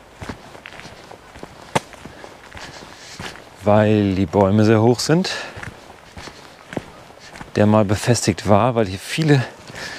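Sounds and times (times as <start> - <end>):
footsteps walking on an old stony forest path: 0.0 - 9.9
sharp crack: 1.7 - 2.0
speech: 3.6 - 5.5, 7.6 - 9.6.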